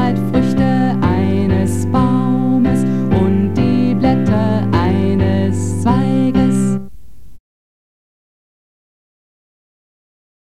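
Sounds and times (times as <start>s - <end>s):
bass: 0.0s - 6.9s
choral music: 0.0s - 6.9s.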